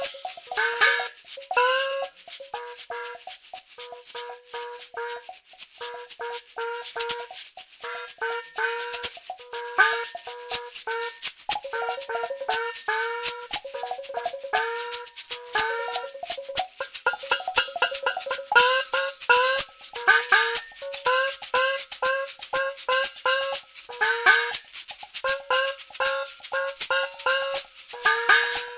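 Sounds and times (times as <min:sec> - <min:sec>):
Chinese gongs: 0:00.0 - 0:06.0, 0:07.1 - 0:23.5
cowbells: 0:00.0 - 0:28.7.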